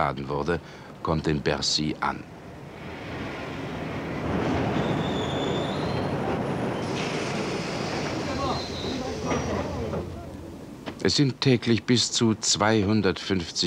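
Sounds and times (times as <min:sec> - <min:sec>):
speech: 0:00.0 - 0:02.4, 0:11.0 - 0:13.6
freight train arriving at station: 0:02.4 - 0:11.0
train wheel squeals: 0:04.7 - 0:10.2.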